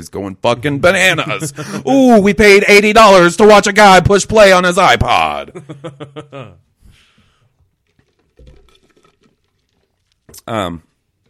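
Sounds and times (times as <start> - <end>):
speech: 0.0 - 7.0, 10.4 - 10.9
laughter: 1.1 - 2.0, 5.4 - 6.7
person sipping a drink: 7.2 - 10.5.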